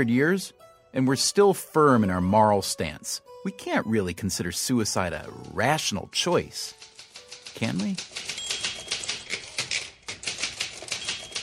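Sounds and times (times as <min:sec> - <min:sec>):
speech: 0:00.0 - 0:06.9, 0:07.6 - 0:08.4
fast typing on a manual typewriter: 0:04.9 - 0:11.4.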